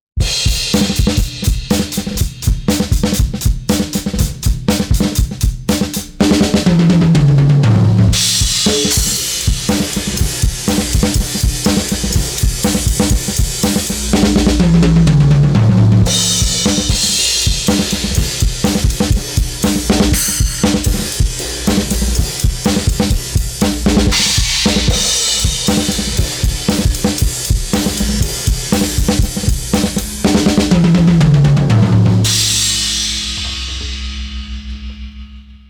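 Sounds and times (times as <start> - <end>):
drums: 0.1 - 35.6.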